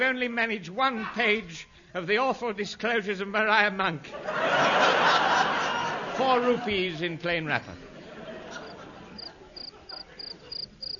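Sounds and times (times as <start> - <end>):
speech: 0.0 - 5.3, 6.2 - 7.9
laughter: 4.1 - 10.9
cricket chirping: 8.6 - 10.9.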